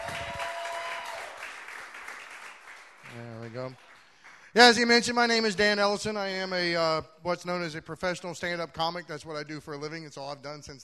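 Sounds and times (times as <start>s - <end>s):
audience clapping: 0.0s - 5.0s
speech: 3.5s - 3.9s, 4.5s - 10.8s.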